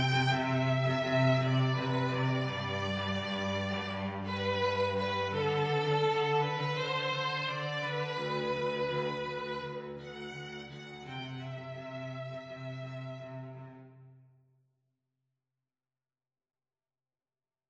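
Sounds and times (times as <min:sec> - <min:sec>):
string duo: 0:00.0 - 0:13.8.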